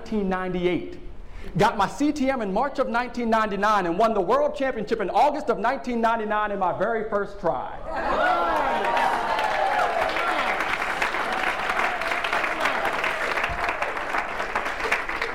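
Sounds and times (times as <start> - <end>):
speech: 0.1 - 8.4
audience applause: 8.0 - 15.3.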